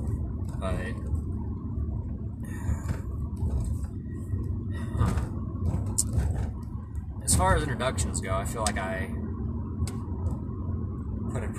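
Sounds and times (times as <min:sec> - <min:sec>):
soft knocks and rattles: 0:00.0 - 0:07.8
car driving road rumble heard from inside the car: 0:00.0 - 0:11.5
speech: 0:00.6 - 0:01.1, 0:07.3 - 0:09.2.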